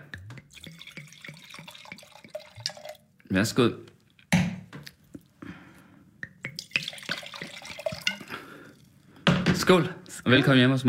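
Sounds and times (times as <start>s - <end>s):
wine being poured into a glass: 0.4s - 3.1s, 6.5s - 9.0s
speech: 3.3s - 3.9s, 9.7s - 10.8s.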